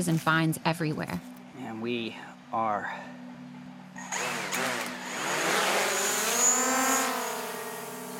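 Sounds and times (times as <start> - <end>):
speech: 0.0 - 3.2
drone motors whirring and buzzing: 4.0 - 8.1.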